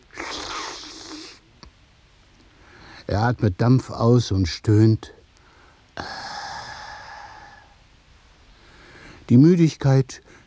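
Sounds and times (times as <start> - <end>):
slurping tea through a sugar cube: 0.1 - 1.4
speech: 3.1 - 5.2, 9.3 - 10.4.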